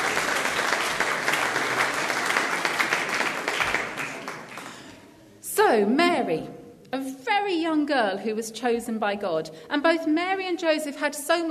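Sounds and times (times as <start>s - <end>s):
audience applause: 0.0s - 5.0s
speech: 5.7s - 11.4s.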